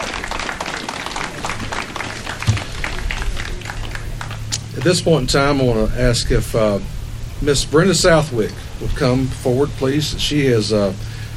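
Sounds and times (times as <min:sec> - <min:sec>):
audience applause: 0:00.0 - 0:05.0
speech: 0:04.8 - 0:11.1.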